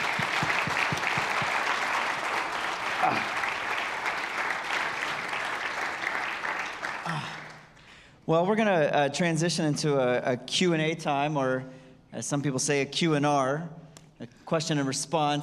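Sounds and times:
audience applause: 0:00.0 - 0:07.7
speech: 0:08.3 - 0:15.4.

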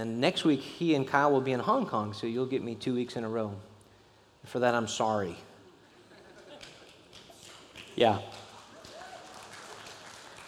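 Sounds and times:
speech: 0:00.0 - 0:03.7, 0:04.4 - 0:05.5, 0:08.0 - 0:08.4
audience clapping: 0:06.3 - 0:10.4.

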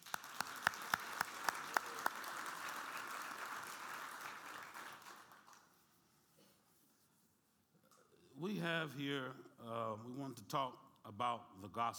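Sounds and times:
audience clapping hands: 0:00.0 - 0:05.8
speech: 0:08.4 - 0:11.9.

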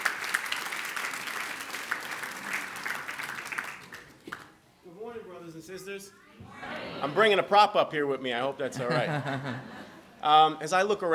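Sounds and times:
church congregation applauding a speaker: 0:00.0 - 0:04.6
speech: 0:05.7 - 0:11.1
laughter: 0:06.5 - 0:07.7, 0:08.6 - 0:10.2.

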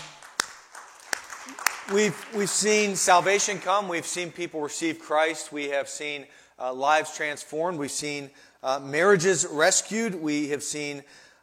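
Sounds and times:
scattered claps: 0:00.0 - 0:02.7
speech: 0:01.9 - 0:11.2.

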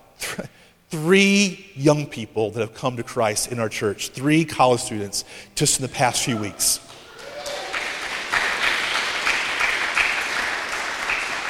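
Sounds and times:
speech: 0:00.4 - 0:07.0
polite applause from a crowd: 0:06.9 - 0:11.4.

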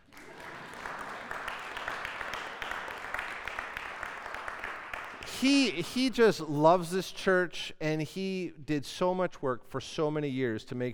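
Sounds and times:
audience applause: 0:00.0 - 0:05.8
speech: 0:05.4 - 0:10.9.

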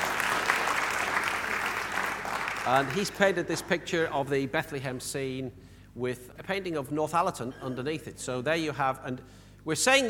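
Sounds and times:
audience applause: 0:00.0 - 0:03.6
speech: 0:02.6 - 0:10.0.

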